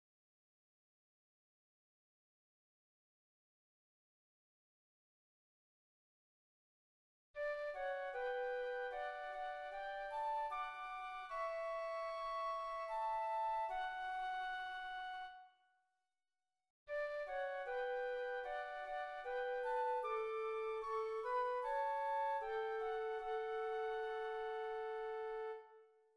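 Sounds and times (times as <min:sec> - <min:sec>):
flutes: 0:07.4 - 0:15.6, 0:16.9 - 0:26.1.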